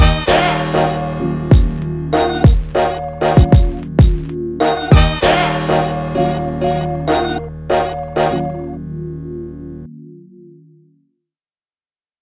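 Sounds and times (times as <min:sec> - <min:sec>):
hip hop music: 0:00.0 - 0:08.8.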